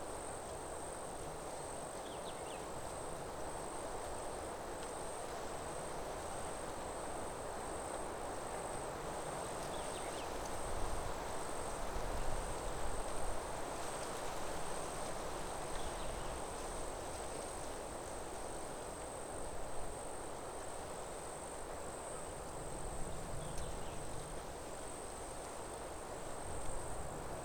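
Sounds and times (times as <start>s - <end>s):
slight wind in a forest: 0.0s - 27.4s.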